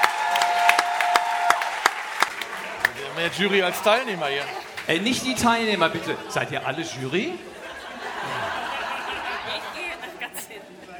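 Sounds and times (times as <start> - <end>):
audience applause: 0.0 - 3.0
speech: 3.2 - 7.5
laughter: 3.7 - 10.5.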